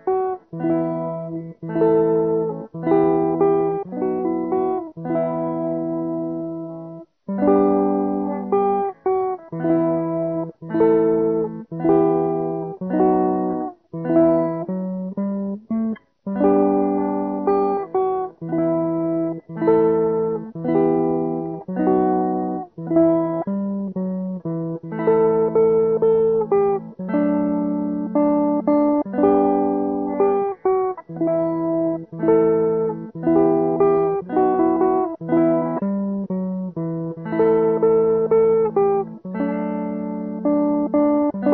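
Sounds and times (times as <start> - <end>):
low-voice electric bandurka ukulele: 0.0 - 41.5.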